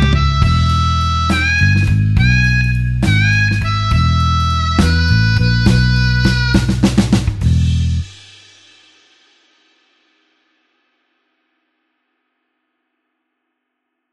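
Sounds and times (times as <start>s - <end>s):
slow blues harmonica in E: 0.0s - 8.0s.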